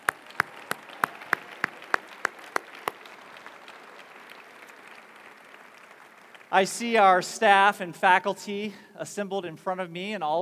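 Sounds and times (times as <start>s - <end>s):
audience clapping: 0.0s - 7.2s
speech: 6.5s - 10.3s.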